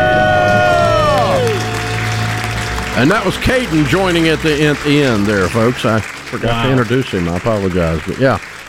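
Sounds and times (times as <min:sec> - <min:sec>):
group celebratory debt-free scream: 0:00.0 - 0:04.5
speech: 0:03.0 - 0:08.6.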